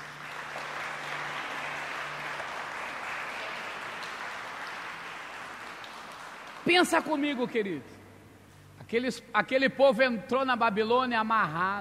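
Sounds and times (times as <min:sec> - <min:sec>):
audience applauding: 0:00.0 - 0:07.6
speech: 0:06.6 - 0:08.0, 0:08.9 - 0:11.7.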